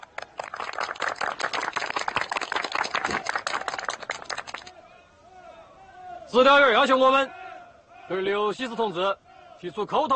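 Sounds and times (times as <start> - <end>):
group audience applause: 0.0 - 4.7
speech: 6.3 - 7.4, 8.1 - 10.1.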